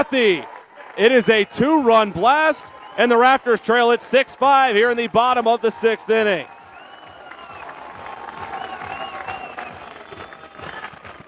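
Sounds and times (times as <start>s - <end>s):
speech: 0.0s - 6.6s
large stadium crowd cheering and applauding: 0.0s - 11.2s
crowd whistling: 2.6s - 3.5s, 6.4s - 11.2s.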